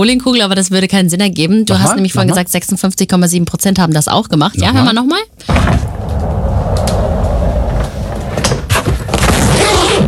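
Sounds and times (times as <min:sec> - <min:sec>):
speech: 0:00.0 - 0:06.0
rolling suitcase rolled then opened: 0:05.8 - 0:10.0.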